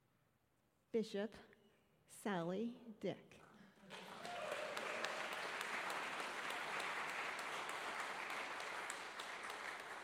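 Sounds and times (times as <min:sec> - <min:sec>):
speech: 0:00.9 - 0:01.5, 0:02.1 - 0:03.4
audience applause welcoming a bishop to the stage: 0:03.9 - 0:10.0.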